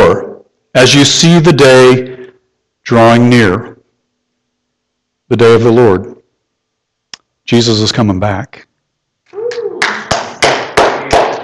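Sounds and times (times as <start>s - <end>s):
speech: 0.7s - 2.1s, 2.9s - 3.8s, 5.3s - 6.1s, 7.5s - 8.7s
audience clapping: 9.5s - 11.4s.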